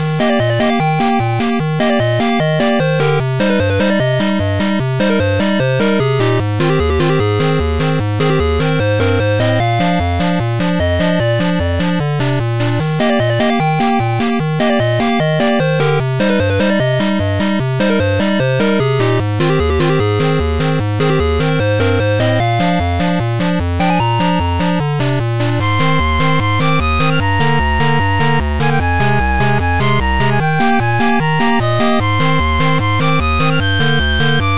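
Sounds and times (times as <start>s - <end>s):
8bit music: 0.0s - 34.5s.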